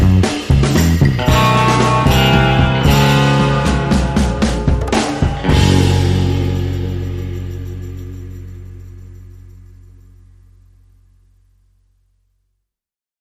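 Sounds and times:
drums: 0:00.0 - 0:09.7
bass guitar: 0:00.0 - 0:12.1.

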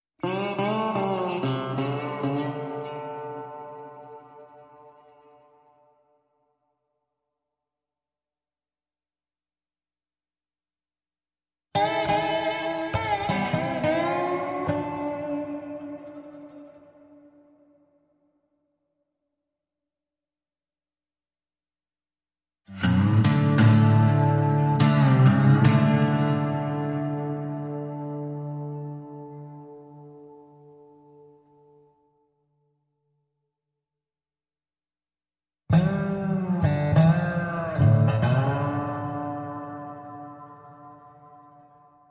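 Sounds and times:
guitar in D minor: 0:00.2 - 0:06.3, 0:11.7 - 0:18.2, 0:22.7 - 0:32.2, 0:35.7 - 0:42.1.

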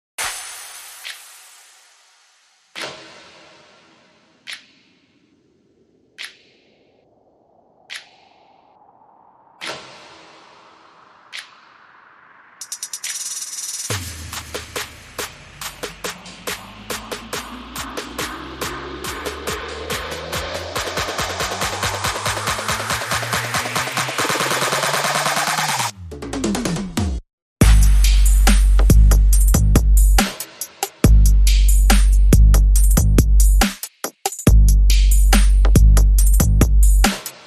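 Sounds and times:
enchanted trap bass drums: 0:12.6 - 0:25.9, 0:27.6 - 0:33.8, 0:34.5 - 0:37.4.

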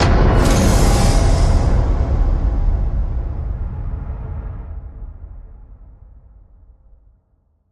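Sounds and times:
horror hit: 0:00.0 - 0:05.6.

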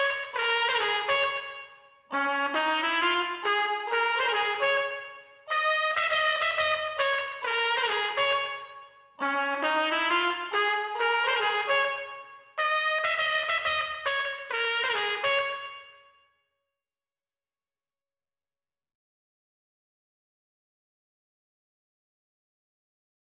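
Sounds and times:
trumpets: 0:00.0 - 0:16.3.

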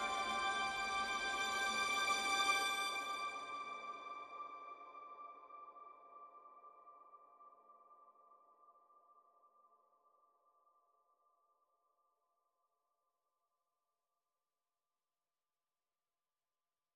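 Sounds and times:
high strings: 0:00.0 - 0:03.4.

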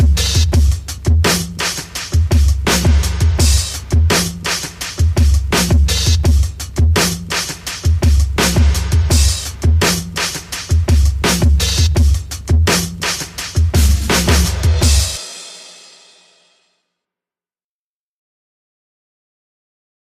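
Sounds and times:
beat: 0:00.0 - 0:15.8.

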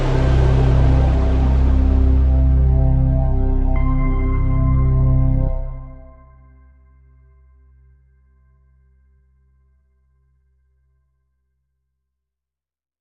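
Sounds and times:
synth pad: 0:00.0 - 0:06.8.

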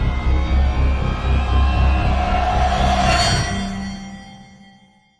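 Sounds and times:
riser sweep: 0:00.2 - 0:04.7.

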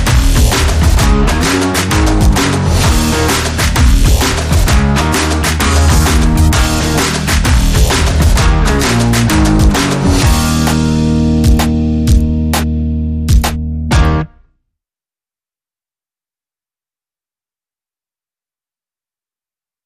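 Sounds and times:
music backing track: 0:00.0 - 0:14.4.

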